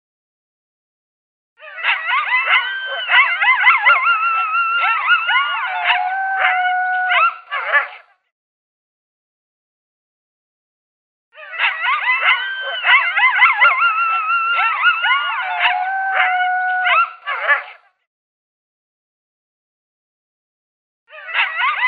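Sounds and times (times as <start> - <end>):
coyote locator call of yips and howls: 1.6 - 8.1, 11.4 - 17.8, 21.1 - 21.8.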